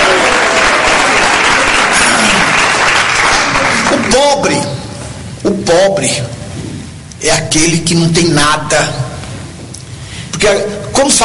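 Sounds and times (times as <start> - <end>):
audience clapping hands: 0.0 - 4.6
speech: 4.3 - 4.7, 5.4 - 6.4, 7.2 - 9.0, 10.4 - 11.2.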